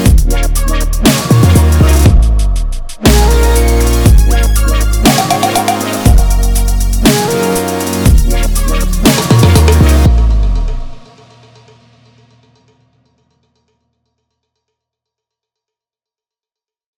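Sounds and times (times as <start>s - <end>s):
trailer drums: 0.1s - 7.1s, 8.0s - 12.0s.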